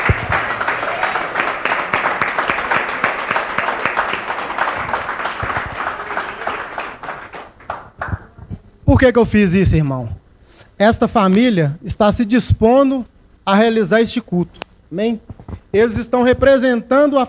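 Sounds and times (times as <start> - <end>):
audience applauding: 0.0 - 8.4
speech: 9.0 - 10.2, 10.8 - 17.2.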